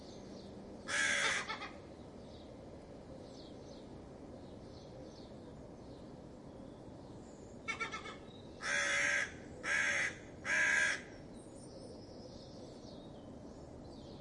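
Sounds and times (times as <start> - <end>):
crow giving alarm calls because of a fox: 0.9 - 1.8, 7.7 - 11.1.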